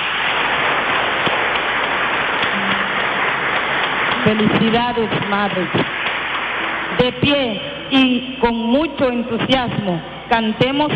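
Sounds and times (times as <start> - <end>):
audience applause: 0.3 - 4.7
speech: 4.2 - 6.0, 7.0 - 10.9.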